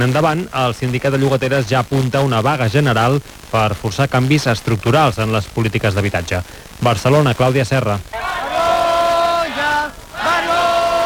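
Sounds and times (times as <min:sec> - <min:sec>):
speech: 0:00.0 - 0:08.4
crowd shouting shame at a protest assembly: 0:08.1 - 0:11.0.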